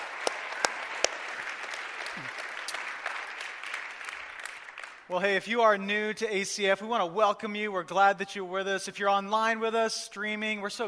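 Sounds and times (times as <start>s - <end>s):
audience applause: 0.0s - 5.1s
speech: 5.1s - 10.8s.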